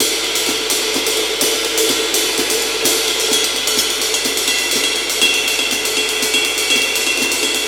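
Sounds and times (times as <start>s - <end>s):
classic drum breaks at 125 BPM: 0.0s - 7.6s.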